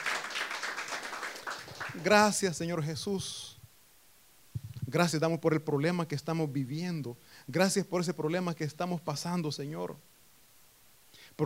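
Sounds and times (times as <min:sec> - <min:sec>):
audience applause: 0:00.0 - 0:02.2
speech: 0:02.0 - 0:03.4, 0:04.9 - 0:10.1.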